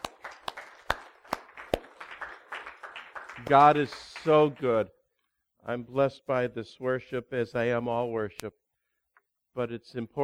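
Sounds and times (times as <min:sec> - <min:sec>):
audience applause: 0:00.0 - 0:04.6
speech: 0:03.4 - 0:05.0, 0:05.6 - 0:08.6, 0:09.6 - 0:10.2.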